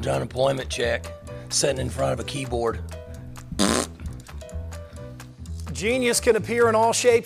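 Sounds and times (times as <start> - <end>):
speech: 0.0 - 3.0, 5.8 - 7.2
raspberry blown with the lips imitating a fart: 3.5 - 4.0.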